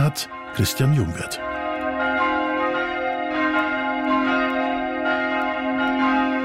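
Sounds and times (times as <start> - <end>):
church bells in Utting rung by hand with a rope for the midday ringing: 0.0 - 6.4
speech: 0.1 - 1.5.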